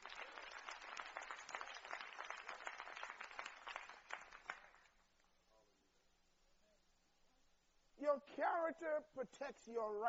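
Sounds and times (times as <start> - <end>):
crowd clapping: 0.0 - 5.0
speech: 8.1 - 10.0.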